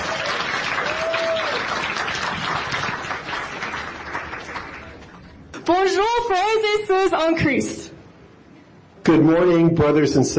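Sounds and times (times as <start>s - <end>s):
church congregation applause welcoming mission team from Togo: 0.0s - 5.3s
speech: 5.7s - 7.8s, 9.0s - 10.3s.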